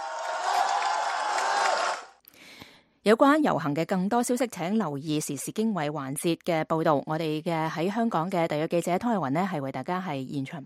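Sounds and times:
large crowd clapping hands loudly: 0:00.0 - 0:02.2
speech: 0:03.0 - 0:10.6.

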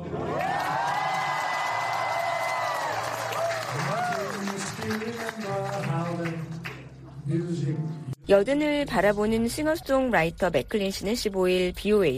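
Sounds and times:
dinner audience applause at the White House: 0:00.3 - 0:06.9
speech: 0:08.3 - 0:12.1.

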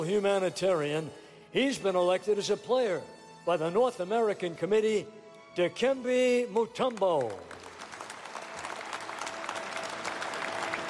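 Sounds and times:
speech: 0:00.0 - 0:07.5
applause at the Basketball Hall of Fame induction: 0:06.8 - 0:10.8.

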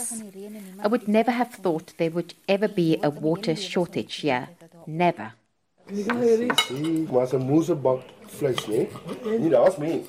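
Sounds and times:
speech: 0:00.0 - 0:10.0
forks and knives clinking on plates: 0:06.1 - 0:07.2, 0:08.4 - 0:10.0.

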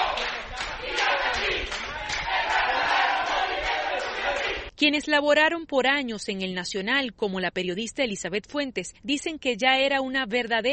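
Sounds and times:
students shouting slogans: 0:00.0 - 0:04.7
speech: 0:04.8 - 0:10.7.

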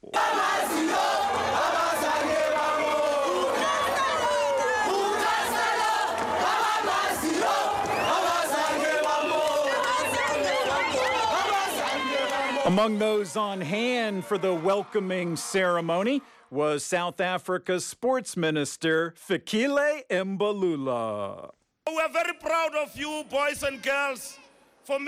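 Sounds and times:
crowd cheering in airport terminal: 0:00.0 - 0:16.6
speech: 0:12.7 - 0:25.0.

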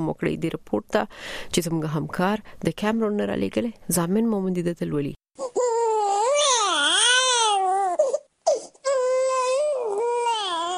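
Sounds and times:
speech: 0:00.0 - 0:05.2
two-day-old newborn crying outside a private hospital in Douala Cameroon: 0:05.4 - 0:10.7.

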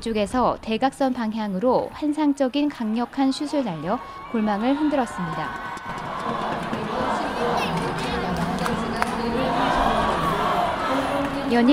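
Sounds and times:
speech: 0:00.0 - 0:06.0, 0:11.5 - 0:11.7
ice hockey arena crowd cheering after a goal: 0:02.8 - 0:11.7.

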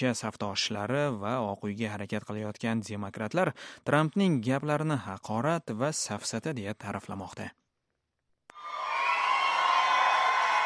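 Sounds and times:
speech: 0:00.0 - 0:07.6
crowd cheering and applauding to greet Donald Trump in South Carolina: 0:08.5 - 0:10.6.

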